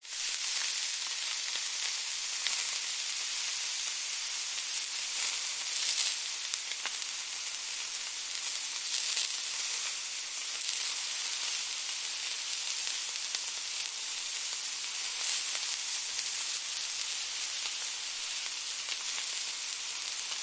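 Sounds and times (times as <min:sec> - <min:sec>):
raw chicken breast sizzling in hot oil in a fry pan: 0:00.0 - 0:20.4.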